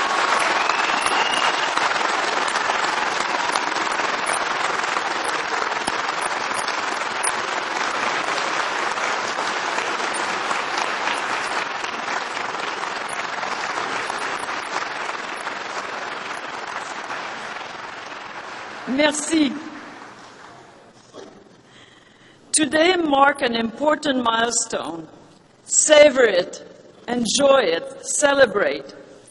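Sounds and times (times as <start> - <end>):
audience applause: 0.0 - 20.6
speech: 19.0 - 19.6, 22.6 - 25.2, 25.8 - 29.0.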